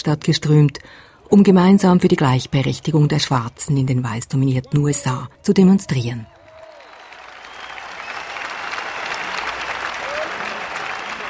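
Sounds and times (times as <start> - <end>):
speech: 0.0 - 6.4
crowd applause: 6.3 - 11.2.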